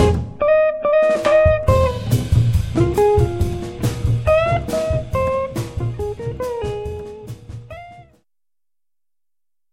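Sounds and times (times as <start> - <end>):
instrumental jazz trio medley: 1.1 - 8.1.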